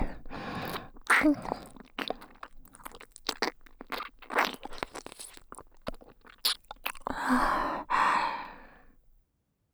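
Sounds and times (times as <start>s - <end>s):
erotic breathy sighs in left-ear ASMR loop: 0.0s - 2.6s, 6.8s - 9.0s
close ear licking in left ear ASMR: 0.0s - 9.0s.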